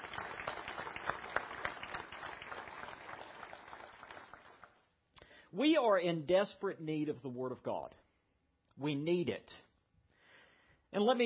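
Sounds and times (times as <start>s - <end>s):
audience applause: 0.0s - 4.8s
speech: 5.5s - 8.0s, 8.8s - 9.7s, 10.9s - 11.2s.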